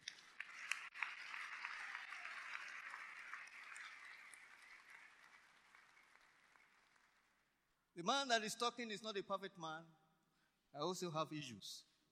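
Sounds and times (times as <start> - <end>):
audience applause: 0.0 - 7.4
speech: 8.0 - 10.0, 10.7 - 12.1.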